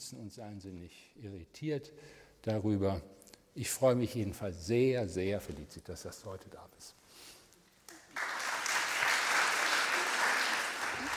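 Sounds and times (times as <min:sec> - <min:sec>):
speech: 0:00.0 - 0:07.0
audience applause: 0:07.9 - 0:11.1.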